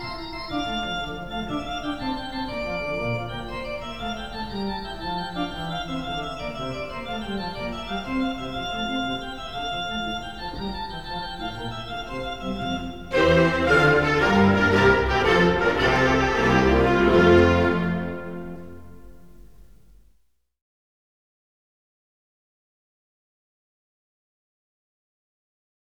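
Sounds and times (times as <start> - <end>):
organ concerto: 0.0 - 19.7.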